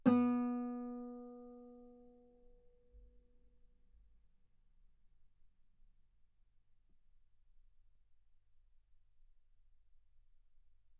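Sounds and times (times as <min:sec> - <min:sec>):
guitar note B3: 0:00.0 - 0:01.8.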